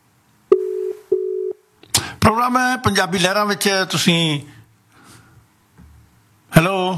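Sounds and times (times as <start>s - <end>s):
ringback tone of an unanswered phone call: 0.5s - 1.6s
speech: 2.3s - 4.6s, 6.6s - 6.9s.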